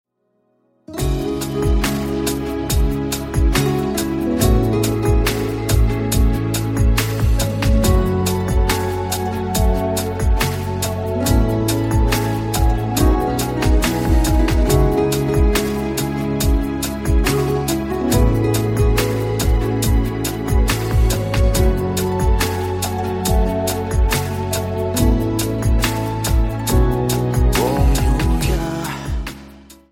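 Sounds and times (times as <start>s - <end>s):
romantic phone ringtone: 0.9s - 29.3s.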